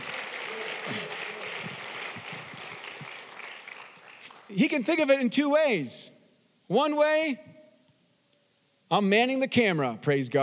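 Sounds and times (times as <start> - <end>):
audience applause: 0.0 - 4.8
speech: 4.5 - 7.5, 8.9 - 10.4.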